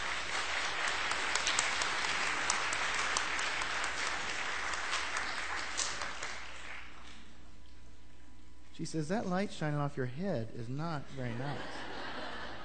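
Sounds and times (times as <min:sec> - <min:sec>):
audience applause: 0:00.0 - 0:07.2
speech: 0:08.8 - 0:11.9
laughter: 0:11.1 - 0:12.6.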